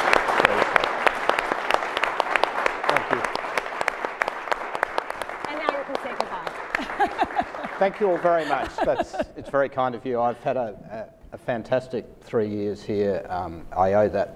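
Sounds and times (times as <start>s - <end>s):
audience applause: 0.0s - 9.4s
laughter: 6.7s - 10.5s
speech: 7.8s - 14.3s.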